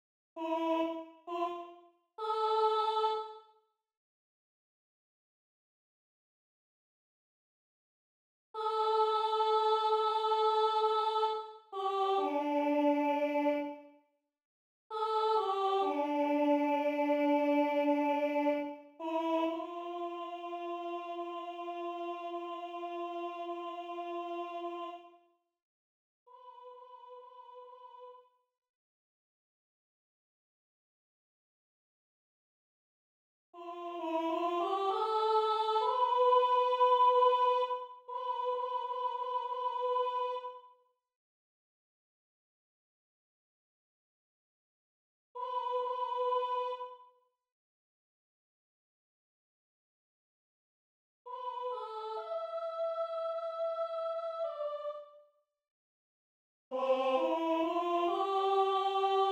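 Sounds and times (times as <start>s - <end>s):
soprano singing: 0.4s - 3.4s, 8.6s - 13.8s, 14.9s - 25.1s, 33.6s - 40.6s, 45.4s - 47.0s, 51.3s - 55.0s, 56.7s - 59.3s.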